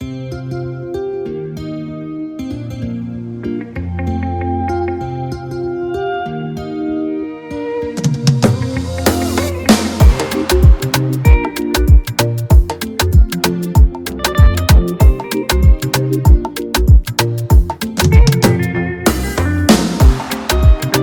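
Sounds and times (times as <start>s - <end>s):
instrumental music: 0.0s - 21.0s.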